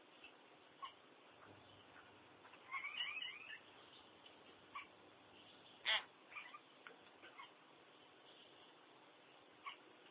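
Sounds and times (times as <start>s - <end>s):
steady hiss: 0.0s - 10.0s
common hill myna rasping call: 5.8s - 6.6s.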